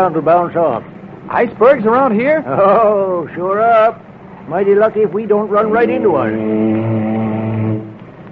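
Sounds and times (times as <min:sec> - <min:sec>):
speech: 0:00.0 - 0:07.2
ship's foghorn blast: 0:05.5 - 0:08.1.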